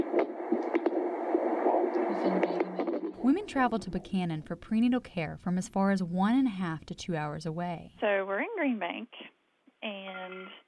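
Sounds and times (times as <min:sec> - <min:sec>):
fetal heartbeat on a Doppler monitor: 0:00.0 - 0:04.8
speech: 0:02.2 - 0:02.6, 0:03.2 - 0:10.6.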